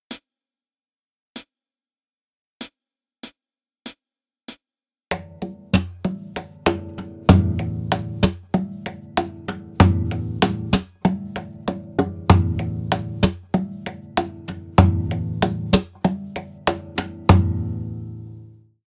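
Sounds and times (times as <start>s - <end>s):
rhythm: 5.1s - 18.5s.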